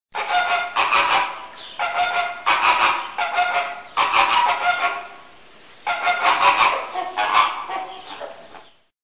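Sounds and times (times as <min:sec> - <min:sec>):
flamingo: 0:00.2 - 0:08.8.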